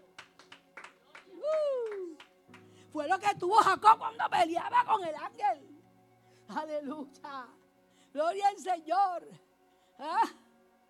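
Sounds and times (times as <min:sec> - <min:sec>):
church congregation clapping: 0:00.0 - 0:04.0
speech: 0:03.0 - 0:05.7, 0:06.5 - 0:10.4.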